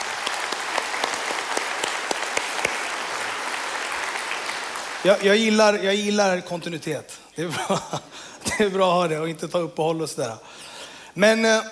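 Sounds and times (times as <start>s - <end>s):
audience applause: 0.0s - 5.8s
speech: 5.0s - 11.6s.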